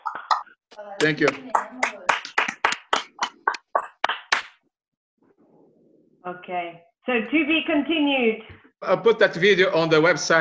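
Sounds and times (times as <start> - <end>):
speech: 0.8 - 1.8, 6.3 - 10.3
round of applause: 1.0 - 4.5.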